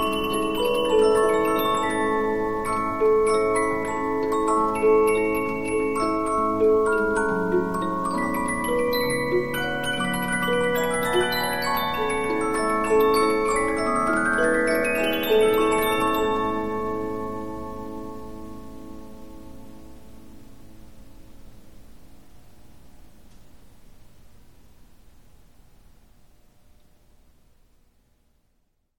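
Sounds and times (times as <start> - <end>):
Polyphon 15-inch disc music box playing: 0.0 - 18.4.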